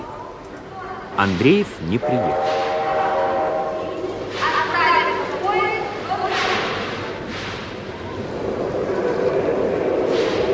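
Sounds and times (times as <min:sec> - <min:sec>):
indistinct voices of passengers murmuring: 0:00.0 - 0:07.3
train rumbling at a Moscow railway station platform: 0:01.1 - 0:10.5
speech: 0:01.2 - 0:02.6.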